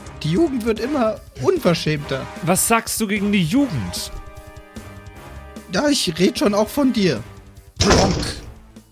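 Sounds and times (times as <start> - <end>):
speech: 0.2 - 4.2, 5.7 - 8.4
door slamming shut: 7.8 - 8.6.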